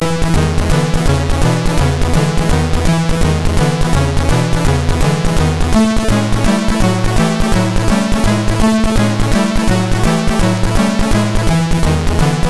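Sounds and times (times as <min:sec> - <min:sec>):
rock and roll on SID MOS6581R3 chip: 0:00.0 - 0:12.4.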